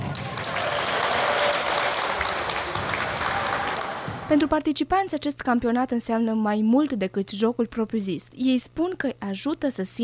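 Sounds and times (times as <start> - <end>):
spectators applauding a basketball goal: 0.0 - 4.3
speech: 4.3 - 10.0.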